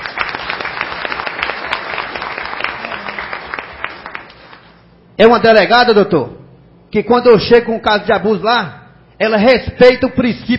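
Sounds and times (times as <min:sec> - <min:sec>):
audience applause: 0:00.0 - 0:04.8
speech: 0:05.2 - 0:10.5.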